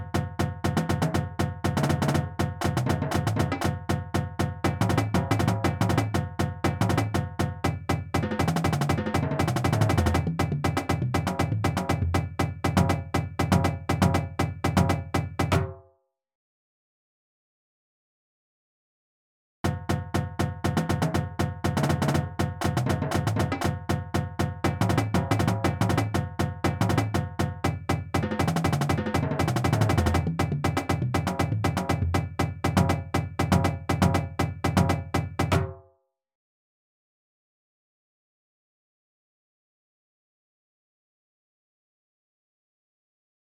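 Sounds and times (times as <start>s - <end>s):
drumline warming up: 0.1s - 15.2s, 20.2s - 35.5s.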